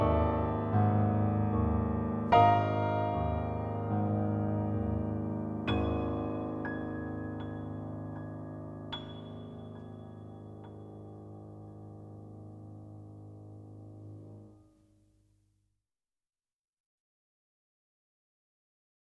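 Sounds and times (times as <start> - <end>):
piano: 0.0 - 14.8.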